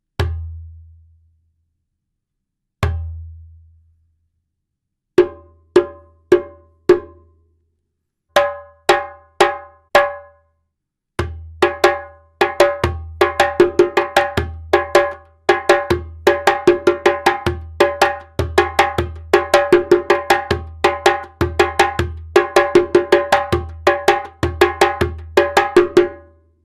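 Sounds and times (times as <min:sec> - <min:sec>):
djembe drumming: 0:05.2 - 0:07.2, 0:08.4 - 0:10.3, 0:11.2 - 0:26.2.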